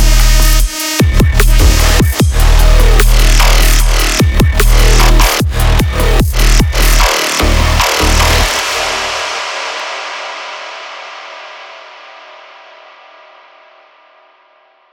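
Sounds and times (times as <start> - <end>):
hybrid trap music sounds: 0.0 - 10.2.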